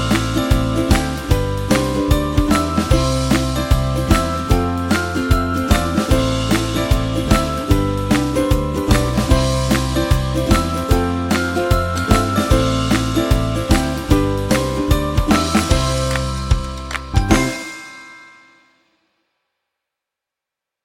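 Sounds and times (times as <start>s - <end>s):
upbeat ukulele music: 0.0s - 18.1s.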